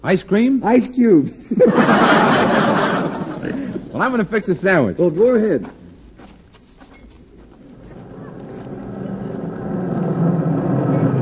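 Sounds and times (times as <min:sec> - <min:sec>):
speech: 0:00.0 - 0:05.8
laughter: 0:01.4 - 0:04.0, 0:07.8 - 0:10.2
milk truck pulling into driveway: 0:07.6 - 0:11.2.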